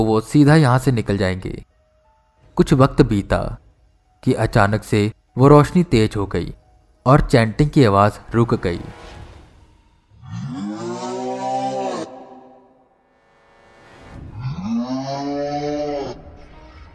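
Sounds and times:
speech: 0.0 - 1.7, 2.6 - 3.6, 4.2 - 9.2
loud eerie howling: 10.2 - 13.0, 14.1 - 16.9.

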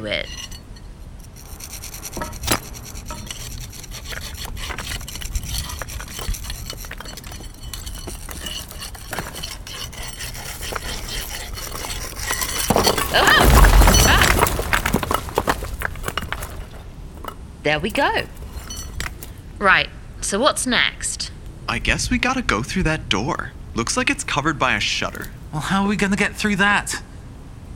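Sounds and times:
speech: 0.0 - 0.5, 17.7 - 18.4, 19.6 - 21.0, 21.7 - 27.1
chipping cement: 1.3 - 19.4
bricks being knocked out: 2.1 - 17.4.

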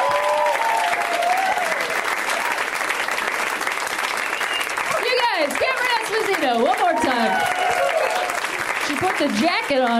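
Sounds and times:
comedy show audience applause and cheering: 0.0 - 9.9
whistles: 4.2 - 4.9
speech: 9.0 - 9.9.

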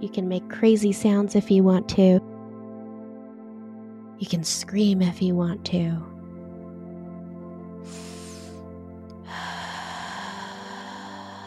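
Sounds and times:
speech: 0.0 - 2.3, 4.2 - 6.1
deep breathing in and out: 7.8 - 11.4.

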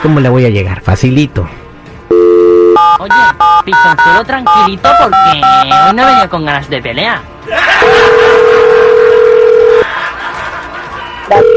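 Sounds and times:
speech: 0.0 - 1.6, 3.0 - 8.5, 11.3 - 11.5
telephone dialing tone: 2.1 - 5.9, 8.1 - 9.8, 11.3 - 11.5
laughter: 7.5 - 11.4.

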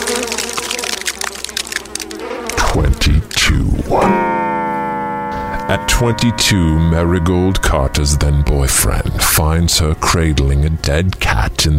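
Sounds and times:
buzzing flies: 0.0 - 5.9
speech: 2.8 - 4.2, 5.7 - 11.7.

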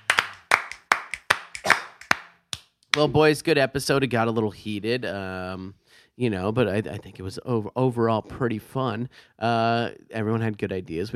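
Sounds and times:
hands clapping: 0.0 - 3.1
speech: 3.0 - 11.1.

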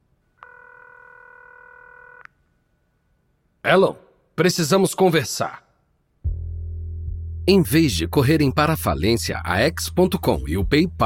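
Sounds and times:
telephone number being dialed: 0.4 - 2.3
speech: 3.7 - 5.7, 7.5 - 11.0.

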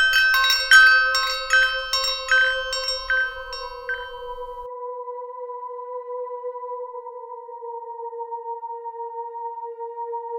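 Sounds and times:
wind chimes ringing: 0.0 - 4.7.

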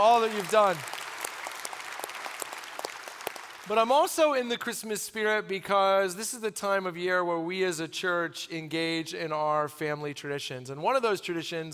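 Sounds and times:
speech: 0.0 - 1.0, 3.7 - 11.7
audience applause: 0.0 - 3.9.

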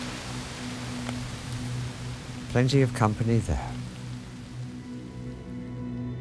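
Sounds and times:
rain falling: 0.0 - 6.1
speech: 2.5 - 3.8.

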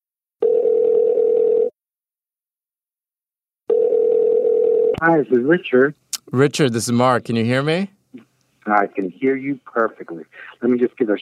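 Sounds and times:
telephone dial tone: 0.4 - 1.7, 3.7 - 5.0
speech: 5.0 - 11.1.

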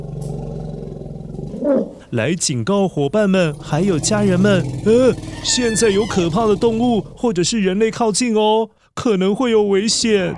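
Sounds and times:
elephant low rumbling call: 0.0 - 2.2, 3.0 - 7.9
speech: 1.7 - 10.3.

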